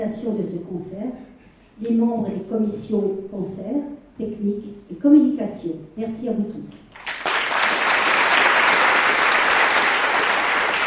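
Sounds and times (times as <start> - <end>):
speech: 0.0 - 7.0
audience applause at a concert: 7.0 - 10.8.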